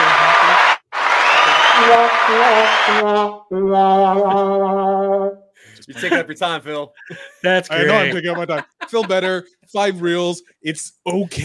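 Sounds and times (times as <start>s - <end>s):
canned applause effect: 0.0s - 3.0s
whooping and cheering: 0.0s - 3.0s
speech: 1.8s - 11.4s
laughter: 5.8s - 9.5s.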